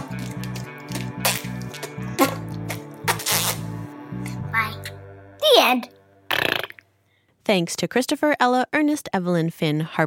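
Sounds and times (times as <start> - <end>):
pulsing music: 0.0 - 6.4
voice imitating a lobster fart: 2.2 - 3.7, 6.3 - 6.8
speech: 7.5 - 10.0.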